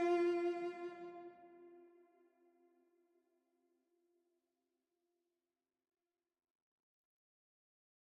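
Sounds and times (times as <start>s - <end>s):
ghosted strings: 0.0s - 1.4s.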